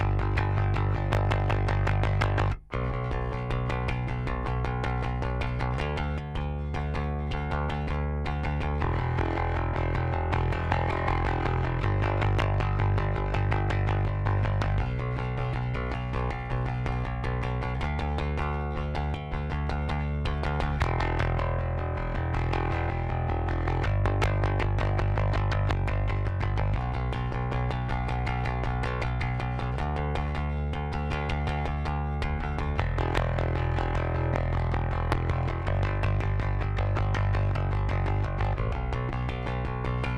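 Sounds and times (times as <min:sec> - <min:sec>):
seven bass DI: 0:00.0 - 0:40.1.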